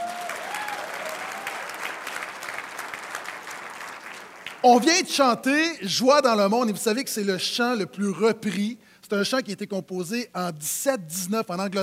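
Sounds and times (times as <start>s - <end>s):
audience applause: 0.0s - 4.7s
speech: 4.6s - 11.8s.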